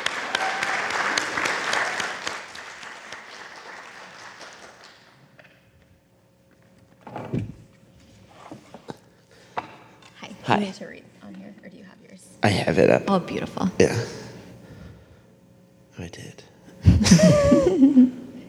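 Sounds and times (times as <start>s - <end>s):
audience clapping to welcome a speaker: 0.0s - 5.8s
speech: 10.5s - 11.1s, 12.4s - 14.2s
laughter: 16.8s - 18.4s.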